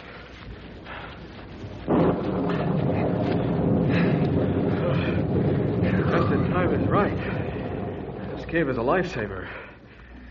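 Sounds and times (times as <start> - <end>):
deep rumbling: 0.0 - 10.3
pouring rain: 0.0 - 10.3
storm wind roaring: 0.0 - 10.3
speech: 8.5 - 9.7.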